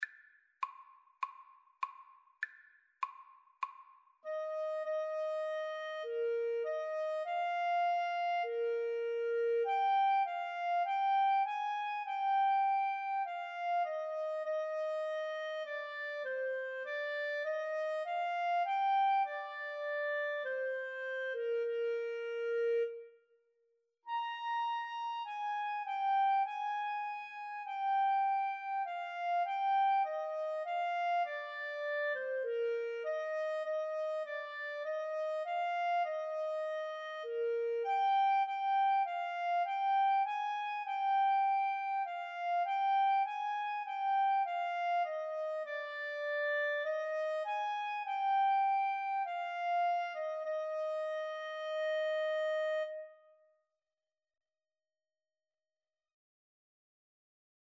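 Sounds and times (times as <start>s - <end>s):
clarinet: 4.2s - 23.3s, 24.1s - 53.4s
saxophone: 4.3s - 23.2s, 24.1s - 53.2s.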